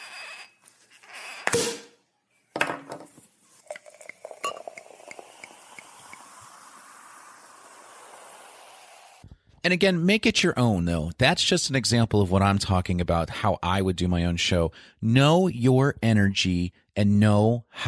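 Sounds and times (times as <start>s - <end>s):
glasses clinking: 3.6s - 5.5s
prosecco bottle cork popping: 3.6s - 6.8s
fizzing hiss: 3.6s - 9.2s
speech: 9.6s - 17.8s.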